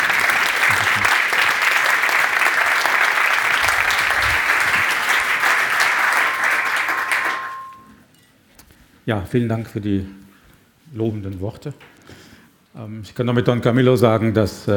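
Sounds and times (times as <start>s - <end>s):
audience applause: 0.0s - 7.8s
speech: 9.1s - 10.2s, 10.9s - 12.0s, 12.8s - 14.7s.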